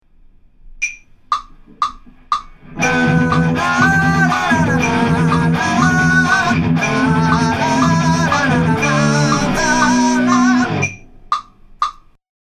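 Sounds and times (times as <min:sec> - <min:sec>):
vocals: 0:02.6 - 0:11.4.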